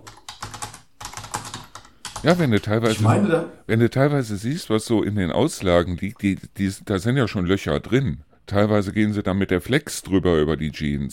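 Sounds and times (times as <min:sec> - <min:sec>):
computer keyboard typing: 0:00.0 - 0:03.0
speech: 0:02.2 - 0:11.1.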